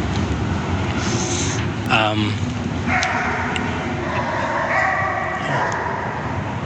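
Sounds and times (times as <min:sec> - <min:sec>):
constant roar of highway traffic: 0:00.0 - 0:06.6
dog barking loudly near a highway: 0:02.9 - 0:06.6.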